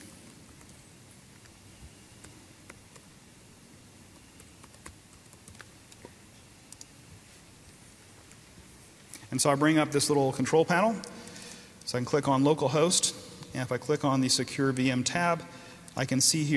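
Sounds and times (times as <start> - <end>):
steady hiss: 0.0 - 16.5
computer keyboard typing while logging in as an admin: 0.3 - 3.1, 4.1 - 6.1
speech: 9.3 - 11.2, 11.9 - 16.5.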